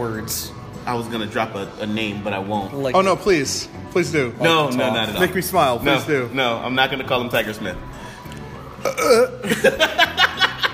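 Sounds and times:
speech: 0:00.0 - 0:08.0, 0:08.8 - 0:10.2
person burping and retching: 0:08.8 - 0:09.6
laughter: 0:09.1 - 0:10.7.

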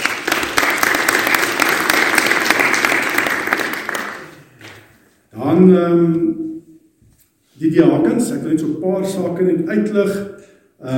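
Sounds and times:
room full of people applauding: 0:00.0 - 0:04.9
speech: 0:05.6 - 0:06.5, 0:07.6 - 0:10.9.

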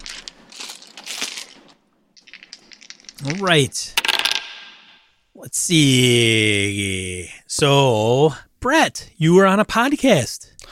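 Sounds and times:
die rolled for a tabletop role-playing campaign: 0:02.2 - 0:05.0
speech: 0:03.2 - 0:04.0, 0:05.4 - 0:10.6.

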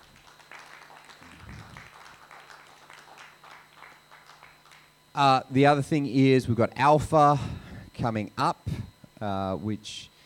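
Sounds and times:
audience clapping: 0:00.0 - 0:05.0
faint steady hum: 0:00.0 - 0:10.2
speech: 0:05.2 - 0:10.1.

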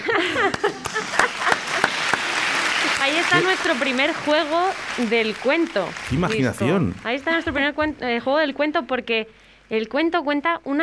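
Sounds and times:
one person clapping hands: 0:00.4 - 0:03.8, 0:06.1 - 0:07.0
speech: 0:03.3 - 0:10.8
person laughing and speaking: 0:06.1 - 0:07.0.

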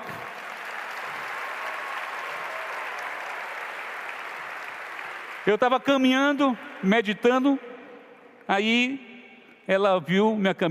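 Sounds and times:
audience clapping: 0:00.0 - 0:06.6
speech: 0:05.4 - 0:07.7, 0:08.5 - 0:09.1, 0:09.7 - 0:10.6.

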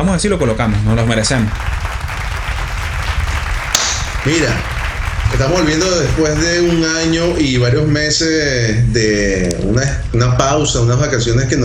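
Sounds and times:
speech: 0:00.0 - 0:01.9, 0:04.2 - 0:04.7, 0:05.3 - 0:11.6
applause sound effect: 0:00.4 - 0:07.8.

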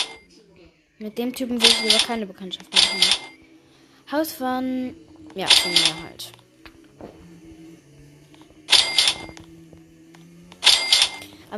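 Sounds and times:
mobile phone ringing: 0:00.0 - 0:00.3, 0:01.6 - 0:03.6, 0:05.4 - 0:06.3, 0:08.7 - 0:09.5, 0:10.6 - 0:11.5
speech: 0:01.0 - 0:03.3, 0:04.1 - 0:06.4.

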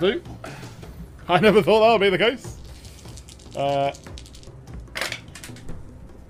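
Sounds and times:
speech: 0:00.0 - 0:00.6, 0:01.3 - 0:02.5, 0:03.6 - 0:04.2
dice clattering onto the floor: 0:02.6 - 0:05.7.

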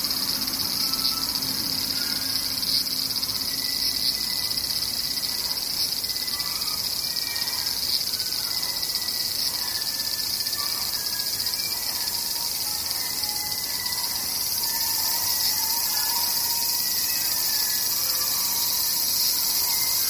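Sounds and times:
cicadas droning: 0:00.0 - 0:20.0
faint chirps and short calls: 0:00.0 - 0:20.0.

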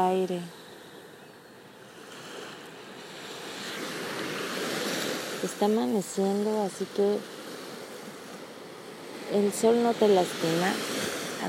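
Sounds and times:
speech: 0:00.0 - 0:00.6, 0:05.4 - 0:07.4, 0:09.3 - 0:11.4
ocean waves breaking on shore: 0:00.0 - 0:11.4.

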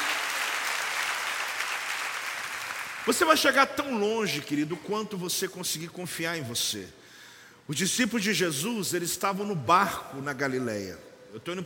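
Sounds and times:
audience cheering: 0:00.0 - 0:02.1
audience applause: 0:00.0 - 0:03.1
speech: 0:03.1 - 0:07.0, 0:07.7 - 0:11.6.

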